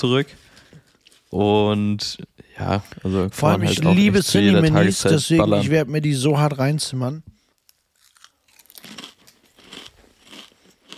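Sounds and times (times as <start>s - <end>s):
speech: 0.0s - 0.4s, 1.3s - 7.4s
person crunching potato chips: 7.6s - 10.9s.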